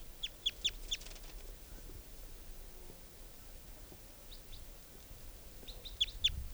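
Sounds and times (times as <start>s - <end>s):
juvenile bird calls: 0.0s - 1.4s, 5.6s - 6.4s.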